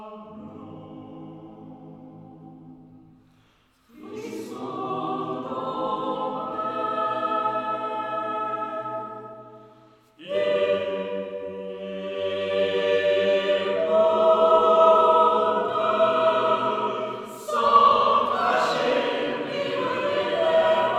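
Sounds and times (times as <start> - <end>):
four-voice SATB mixed choir singing live in a Romanesque church: 0.0 - 3.1, 3.8 - 20.9.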